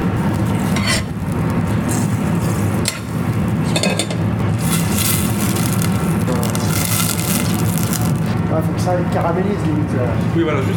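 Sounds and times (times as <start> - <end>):
butter melting and foaming in a heated saucepan: 0.1 - 3.8, 4.4 - 8.4
speech: 8.6 - 10.7.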